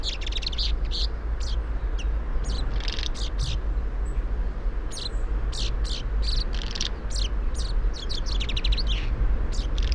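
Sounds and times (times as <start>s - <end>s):
common chaffinch Fringilla coelebs calls: 0.0s - 4.2s, 4.9s - 9.9s.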